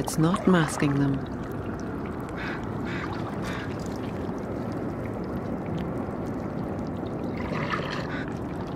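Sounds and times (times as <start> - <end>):
speech: 0.0 - 1.4
water trickling: 0.0 - 8.7
wet clicks and sucking gurgles: 0.0 - 8.7.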